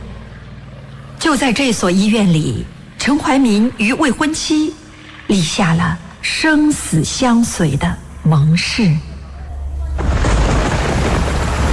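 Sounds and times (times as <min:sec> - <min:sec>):
speech: 0:01.3 - 0:09.1
heavy rain: 0:09.9 - 0:11.7
thunder rumbling: 0:10.0 - 0:11.7.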